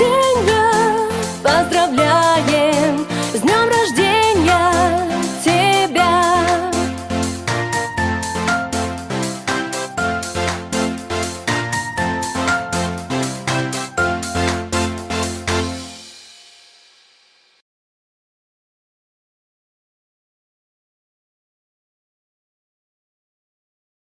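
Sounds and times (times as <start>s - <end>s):
song in Russian: 0.0s - 16.8s.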